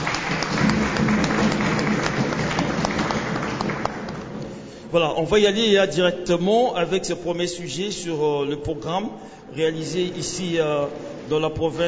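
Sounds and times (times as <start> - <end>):
audience applause: 0.0 - 4.5
speech: 4.9 - 11.8.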